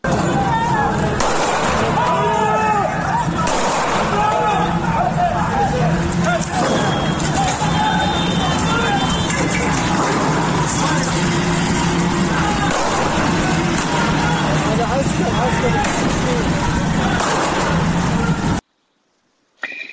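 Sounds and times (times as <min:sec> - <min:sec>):
crowd roaring and shouting: 0:00.0 - 0:18.6
traffic rumble: 0:00.0 - 0:18.7
gunfire bangs during street protests: 0:01.2 - 0:02.1, 0:03.4 - 0:04.4, 0:12.6 - 0:14.2, 0:17.1 - 0:18.0.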